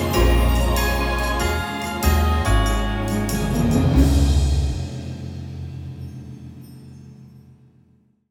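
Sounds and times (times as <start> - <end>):
instrumental music: 0.0 - 5.4.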